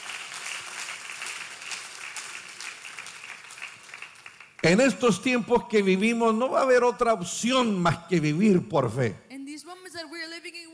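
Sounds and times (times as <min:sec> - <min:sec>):
audience applause: 0:00.0 - 0:05.0
speech: 0:04.6 - 0:09.3.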